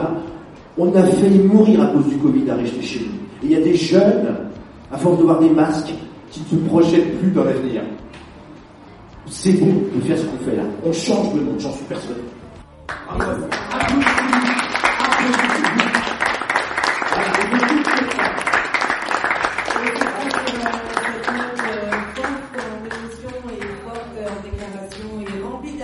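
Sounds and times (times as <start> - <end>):
speech: 0.0 - 8.1, 9.4 - 12.4, 13.1 - 14.4
audience applause: 12.9 - 24.7.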